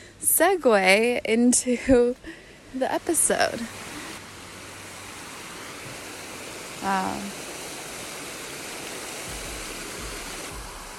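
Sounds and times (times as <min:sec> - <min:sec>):
speech: 0:00.4 - 0:03.8, 0:06.8 - 0:07.4
waterfall: 0:02.2 - 0:10.9.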